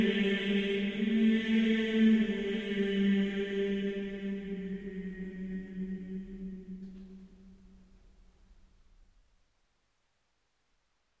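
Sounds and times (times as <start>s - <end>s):
choral schola singing Gregorian chant offertory: 0.0s - 7.5s.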